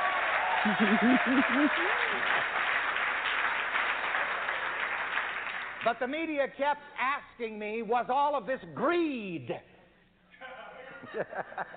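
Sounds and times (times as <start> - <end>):
voices whooping and calling out: 0.0 - 2.2
audience clapping: 0.0 - 6.1
laughter: 0.6 - 2.2, 10.8 - 11.7
speech: 0.6 - 2.6, 5.8 - 9.7, 11.1 - 11.7.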